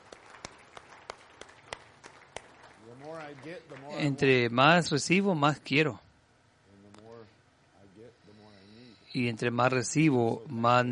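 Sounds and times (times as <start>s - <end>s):
rhythmic hand clapping in unison: 0.0s - 4.2s
soft hiss: 0.0s - 10.9s
speech: 3.0s - 6.0s, 9.2s - 10.9s.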